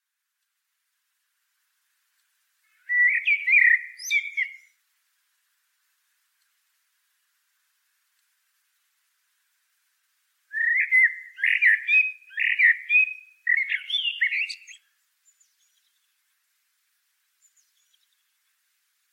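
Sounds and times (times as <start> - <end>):
common blackbird song: 2.2 - 4.8, 10.5 - 19.1.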